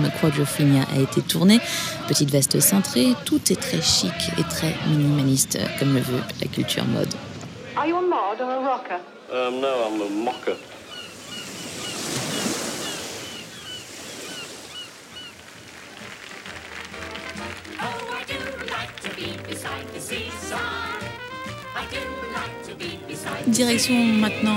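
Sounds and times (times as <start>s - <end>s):
waves surging along the Brighton seafront: 0.0s - 7.9s, 9.0s - 24.5s
speech: 0.1s - 10.7s, 23.6s - 24.5s.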